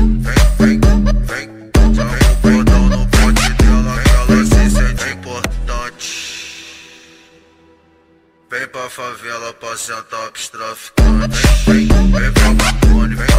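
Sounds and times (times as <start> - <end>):
electro funk music: 0.0 - 6.5, 11.0 - 13.3.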